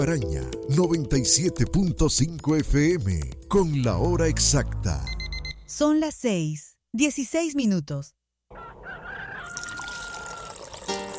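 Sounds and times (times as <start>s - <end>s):
speech: 0.0s - 8.2s
coffee being poured: 9.5s - 11.1s.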